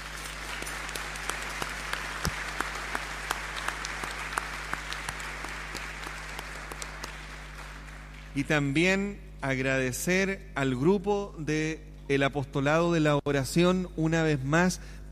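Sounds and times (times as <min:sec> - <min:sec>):
audience applause: 0:00.0 - 0:08.4
speech: 0:08.4 - 0:15.1.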